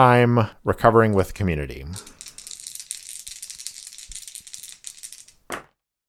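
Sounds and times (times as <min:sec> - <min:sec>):
speech: 0:00.0 - 0:02.2
dice rattling and clattering: 0:01.1 - 0:05.7.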